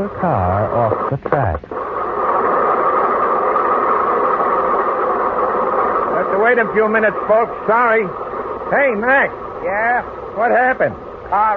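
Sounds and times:
speech: 0.0 - 1.8, 6.4 - 11.5
stopped train engine idling at a railroad crossing: 2.5 - 11.5.

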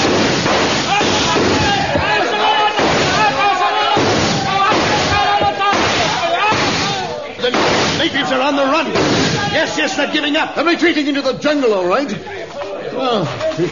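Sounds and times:
rifle volley fired on command: 0.0 - 10.0
people shouting: 0.0 - 10.8
speech: 9.6 - 12.4, 13.0 - 13.7.

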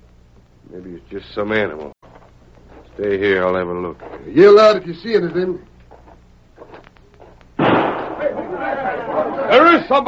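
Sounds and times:
speech: 0.7 - 2.0, 3.0 - 5.7, 9.7 - 10.0
gunshot: 7.6 - 8.5.

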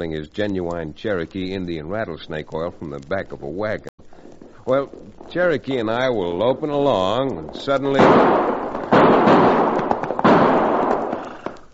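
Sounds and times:
speech: 0.0 - 3.9, 4.7 - 8.6
gunshots: 7.6 - 11.6.

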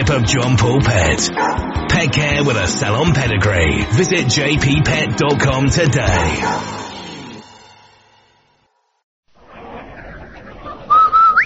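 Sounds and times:
musical tone: 0.0 - 8.6
speech: 0.1 - 6.8
noise: 9.3 - 11.4
man whistling a jingle: 10.9 - 11.4.

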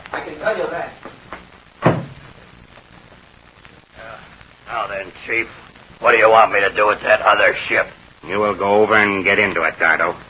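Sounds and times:
speech: 0.2 - 1.1, 4.8 - 10.2
door being shut and locked: 1.8 - 2.2.

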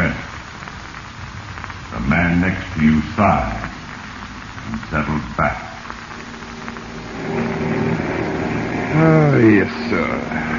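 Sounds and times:
speech: 2.0 - 3.7, 4.7 - 5.7, 8.9 - 10.5
big plane taking off: 3.4 - 10.5.

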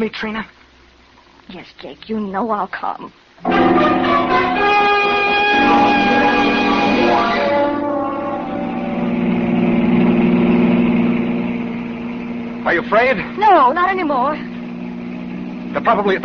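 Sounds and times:
speech: 0.0 - 0.6, 1.5 - 4.9, 12.7 - 14.5, 15.7 - 16.2
car engine drone driven fast at almost 70 on a road: 3.2 - 16.2.

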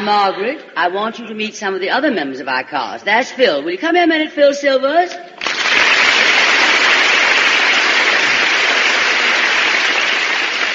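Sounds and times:
speech: 0.0 - 5.4
studio audience applause: 5.4 - 10.7.

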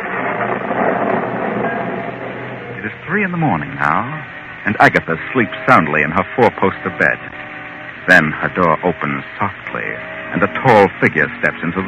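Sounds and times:
rain of a raging storm: 0.0 - 11.8
wind of a raging storm: 0.0 - 11.8
speech: 3.1 - 7.3, 8.0 - 11.8.

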